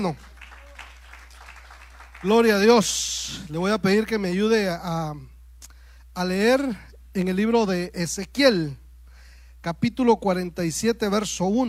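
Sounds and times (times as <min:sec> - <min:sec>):
speech: 0:00.0 - 0:00.3, 0:02.2 - 0:05.3, 0:06.2 - 0:08.8, 0:09.6 - 0:11.6
audience clapping: 0:00.0 - 0:03.0
low hum: 0:00.0 - 0:11.6.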